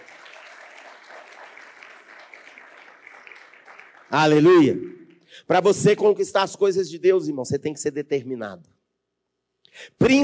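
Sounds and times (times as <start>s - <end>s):
audience applause: 0.0s - 4.7s
speech: 4.1s - 8.8s, 9.8s - 10.2s.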